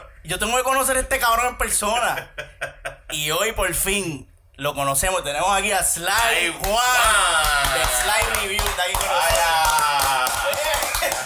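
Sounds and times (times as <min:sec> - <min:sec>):
speech: 0:00.2 - 0:09.8
laughter: 0:02.0 - 0:03.2, 0:07.1 - 0:11.2
man applauding himself: 0:06.2 - 0:11.2.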